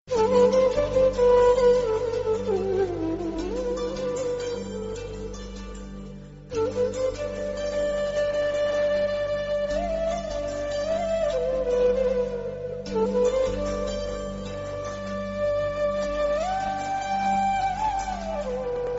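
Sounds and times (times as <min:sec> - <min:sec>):
flute: 0:00.0 - 0:18.9.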